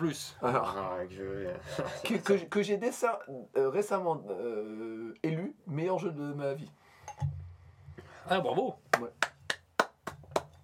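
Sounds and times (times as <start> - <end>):
speech: 0.0 - 7.4, 8.2 - 9.2
laughter: 1.4 - 2.2
single person clapping hands: 8.9 - 10.6.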